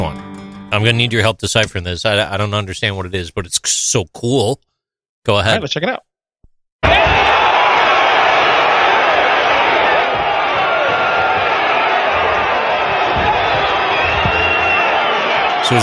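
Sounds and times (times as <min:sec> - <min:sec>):
speech: 0:00.1 - 0:06.1
crowd cheering in played video: 0:06.8 - 0:15.8.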